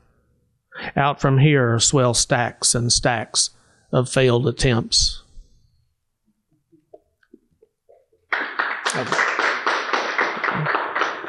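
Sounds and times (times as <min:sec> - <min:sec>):
speech: 0:01.0 - 0:05.2, 0:09.0 - 0:09.2
audience clapping: 0:08.3 - 0:11.2.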